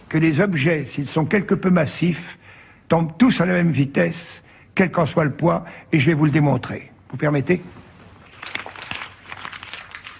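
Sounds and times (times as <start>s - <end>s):
speech: 0.1s - 7.8s
ball of paper being handled, crinkling: 8.1s - 10.1s.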